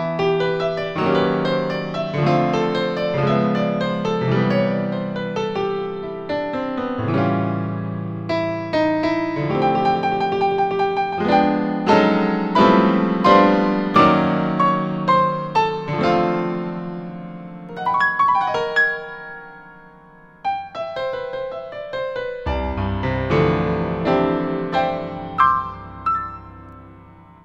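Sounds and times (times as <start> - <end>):
stereo jazz piano: 0.0 - 27.4.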